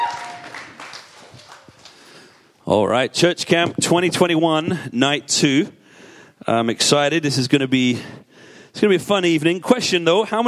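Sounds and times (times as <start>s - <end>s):
audience cheering and clapping: 0.0s - 2.4s
speech: 2.7s - 5.8s, 6.4s - 10.4s.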